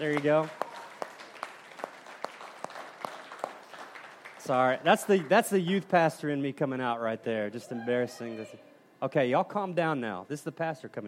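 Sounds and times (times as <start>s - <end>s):
speech: 0.0s - 0.6s, 4.5s - 11.0s
audience clapping: 0.0s - 5.9s.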